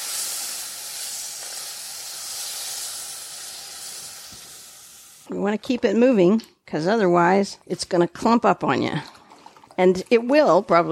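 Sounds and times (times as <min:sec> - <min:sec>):
chicken broth poured into hot pan, sizzling: 0:00.0 - 0:05.3
speech: 0:05.3 - 0:09.2, 0:09.8 - 0:10.9.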